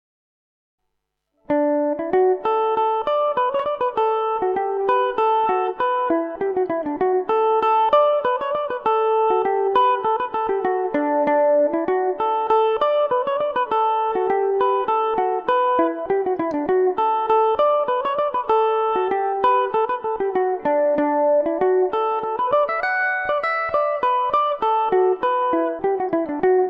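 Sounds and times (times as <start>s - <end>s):
Irish mandolin playing in D major: 1.5s - 26.6s.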